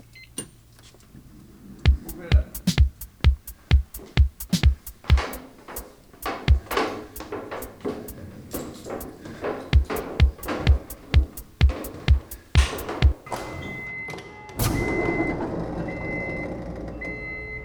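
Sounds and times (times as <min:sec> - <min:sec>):
door opened by pulling a rope: 0:01.9 - 0:13.9.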